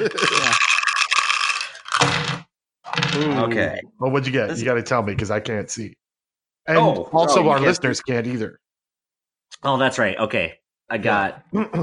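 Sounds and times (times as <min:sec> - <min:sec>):
speech: 0:00.0 - 0:00.7, 0:03.2 - 0:06.0, 0:06.6 - 0:08.6, 0:09.5 - 0:11.8
crunching chips: 0:00.0 - 0:02.1.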